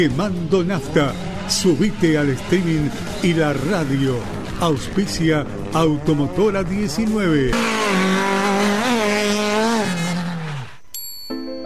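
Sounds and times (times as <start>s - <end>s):
speech: 0.0s - 8.3s
car tires screeching as a driver brakes too late: 0.0s - 10.8s.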